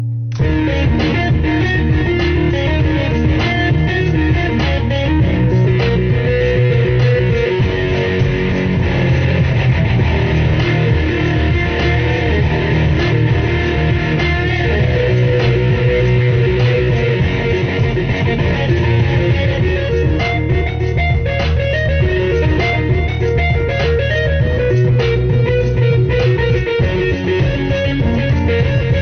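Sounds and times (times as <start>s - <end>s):
guitar: 0.0s - 29.0s.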